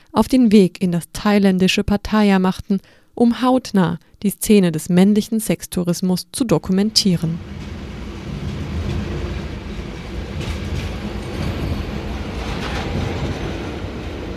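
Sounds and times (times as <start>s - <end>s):
speech: 0.1s - 7.8s
intercity train rolling: 6.9s - 14.3s.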